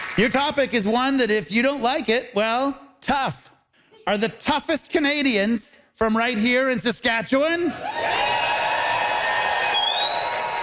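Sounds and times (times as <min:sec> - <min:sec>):
speech: 0:00.2 - 0:03.4, 0:04.1 - 0:08.0
large audience cheering: 0:07.7 - 0:10.6
shrill whistles: 0:09.6 - 0:10.6.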